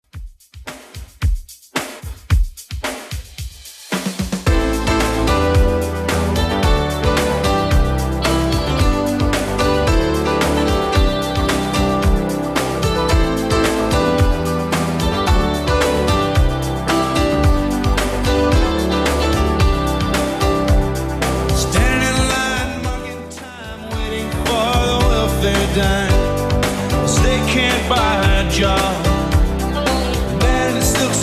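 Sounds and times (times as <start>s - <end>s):
80s Redrum drum machine beat at 111 bpm: 0.0s - 31.2s.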